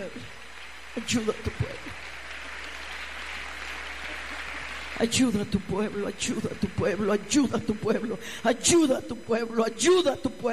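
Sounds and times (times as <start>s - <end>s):
speech: 0.0s - 0.4s, 1.0s - 2.2s, 5.0s - 10.5s
congregation applauding during a Spanish-language church sermon: 0.0s - 7.2s.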